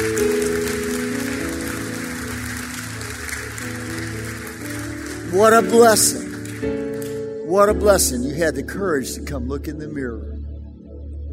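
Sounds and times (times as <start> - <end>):
audience applause: 0.0 - 7.2
speech: 5.3 - 6.8, 7.5 - 10.3.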